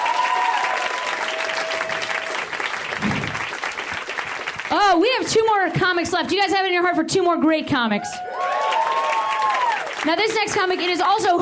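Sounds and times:
audience applause at a stand-up comedy show: 0:00.0 - 0:05.0, 0:08.2 - 0:11.4
speech: 0:04.9 - 0:08.4, 0:10.0 - 0:11.4.

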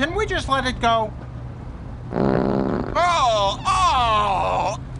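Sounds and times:
speech: 0:00.1 - 0:01.2, 0:03.0 - 0:04.8
flatulence: 0:02.1 - 0:03.0.

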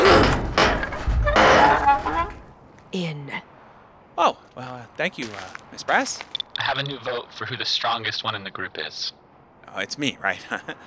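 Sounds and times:
heavy thunks and bangs of a stuck hatch being forced open: 0:00.0 - 0:01.7
speech: 0:02.9 - 0:03.5, 0:04.2 - 0:10.8.

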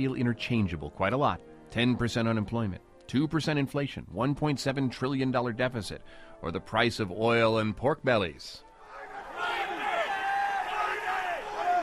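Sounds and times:
speech: 0:00.0 - 0:08.7
traders shouting in commodity exchange pit: 0:08.8 - 0:11.8.

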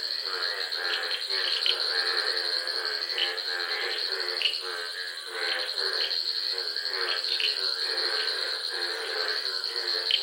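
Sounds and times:
frogs and toads calling in a wetland in Ghana: 0:00.0 - 0:10.2.

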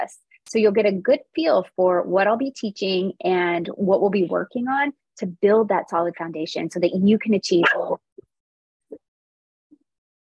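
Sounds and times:
speech: 0:00.0 - 0:08.0
dog barking: 0:07.6 - 0:07.9.

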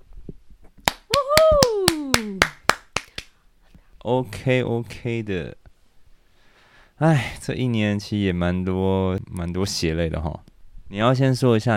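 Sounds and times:
hand clapping: 0:00.8 - 0:03.4
person letting out a long cheering cry: 0:01.1 - 0:02.7
speech: 0:04.0 - 0:05.6, 0:07.0 - 0:11.7.

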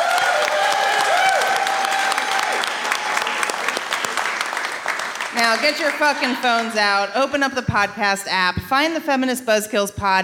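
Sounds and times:
faint whistles and cheers: 0:00.0 - 0:04.3
live audience applause: 0:00.0 - 0:07.0
speech: 0:05.4 - 0:10.2.

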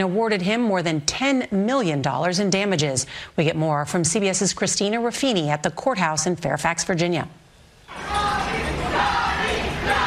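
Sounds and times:
speech: 0:00.0 - 0:08.2
crowd cheering and shouting outside a courthouse: 0:07.9 - 0:10.0.

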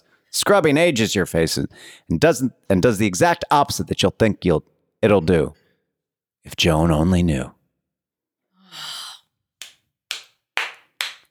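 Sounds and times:
speech: 0:00.3 - 0:05.6, 0:06.4 - 0:07.6
hand claps: 0:09.6 - 0:11.2.

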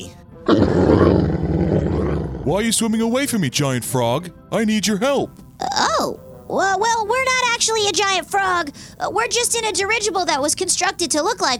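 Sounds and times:
speech: 0:00.0 - 0:00.8, 0:02.5 - 0:11.5
angry walrus roaring: 0:00.5 - 0:02.6.

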